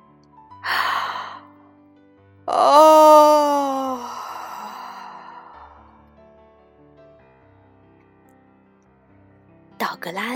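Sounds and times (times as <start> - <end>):
person yawning: 0.7 - 1.5, 2.5 - 5.9
speech: 2.5 - 2.7.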